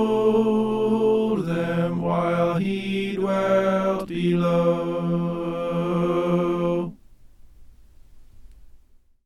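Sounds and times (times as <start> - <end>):
soprano singing: 0.0 - 7.0.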